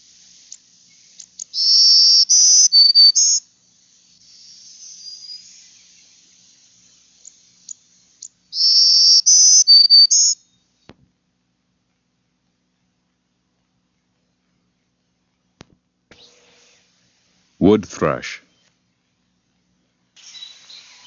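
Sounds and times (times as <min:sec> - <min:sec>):
black-throated green warbler song: 0:00.2 - 0:10.8, 0:20.2 - 0:21.0
speech: 0:17.6 - 0:18.3.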